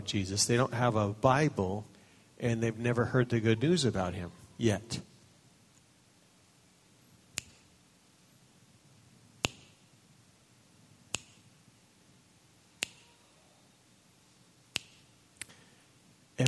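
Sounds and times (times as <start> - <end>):
speech: 0.1 - 5.1
finger snapping: 7.4 - 7.7, 9.4 - 9.8, 11.1 - 11.4, 12.8 - 13.1, 14.7 - 15.6.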